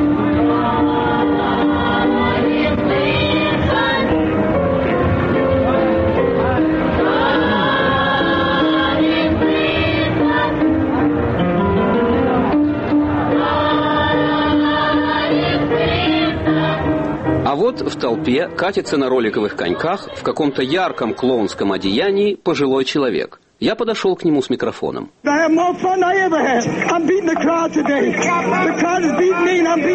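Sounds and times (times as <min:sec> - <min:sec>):
children's choir singing a hymn-like song: 0:00.2 - 0:11.3, 0:11.8 - 0:17.4, 0:18.9 - 0:21.9
speech: 0:17.8 - 0:29.9.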